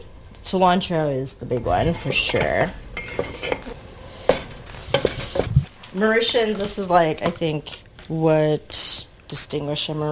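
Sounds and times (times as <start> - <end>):
tomato cooking down in a pan with a soft steady sizzle: 0.0 - 10.0
speech: 0.5 - 3.4, 6.0 - 10.0
utensil stirring, clinking and scraping against the pan: 1.4 - 7.7.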